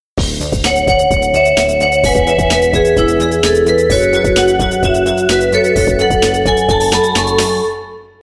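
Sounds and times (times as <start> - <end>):
bell: 0.5 - 8.2.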